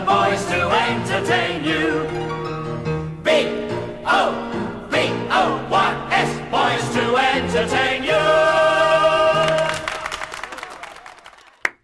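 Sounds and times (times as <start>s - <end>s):
1970s sitcom theme music: 0.0s - 9.6s
live studio audience applause: 9.4s - 11.8s.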